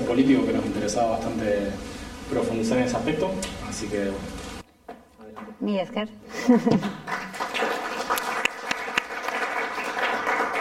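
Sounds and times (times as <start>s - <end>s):
speech: 0.2s - 4.5s, 5.5s - 7.2s
audience applause: 6.8s - 10.5s.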